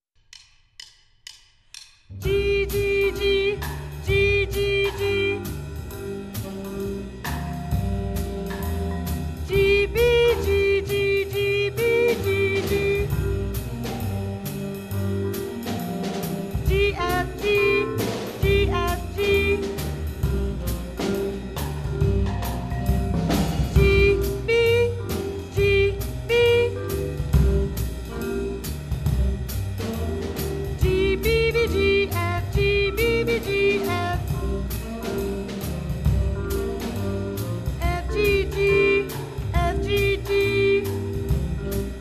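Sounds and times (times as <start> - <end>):
Orff instruments improvising: 1.7 - 41.9.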